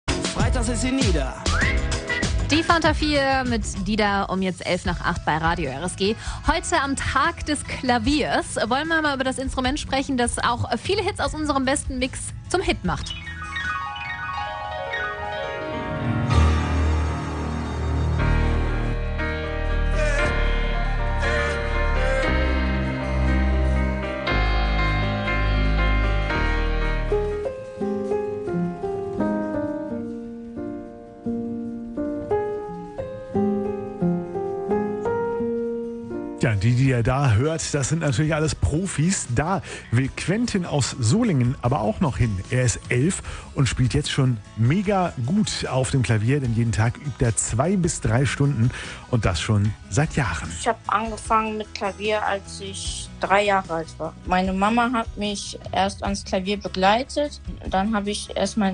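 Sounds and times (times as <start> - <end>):
piano: 0.0 - 58.7.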